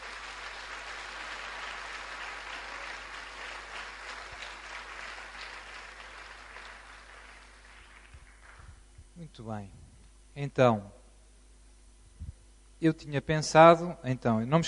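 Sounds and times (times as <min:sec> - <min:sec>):
crowd applause: 0:00.0 - 0:08.8
speech: 0:09.2 - 0:09.8, 0:10.4 - 0:11.0, 0:12.8 - 0:14.6.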